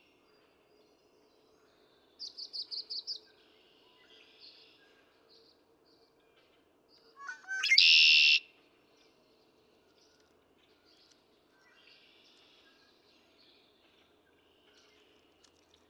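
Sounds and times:
Red-winged Blackbird: 0:07.2 - 0:08.4.

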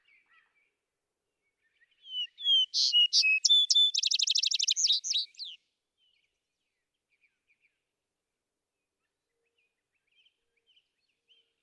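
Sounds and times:
vesper sparrow singing: 0:02.0 - 0:05.6.

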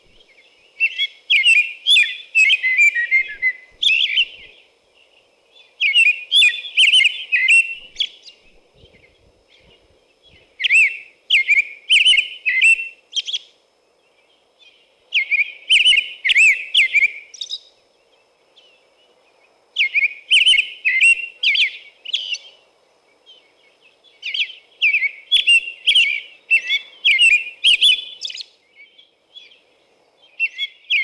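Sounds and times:
American robin singing: 0:00.0 - 0:31.0.

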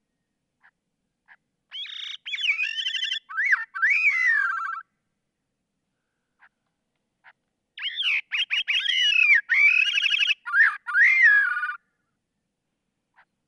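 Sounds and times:
Gray-cheeked Thrush calling: 0:01.3 - 0:04.8, 0:07.2 - 0:11.8.

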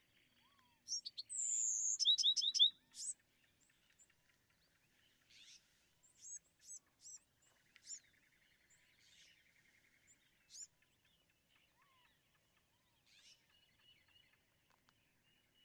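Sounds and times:
Bewick's wren singing: 0:00.9 - 0:03.2, 0:05.3 - 0:09.4.

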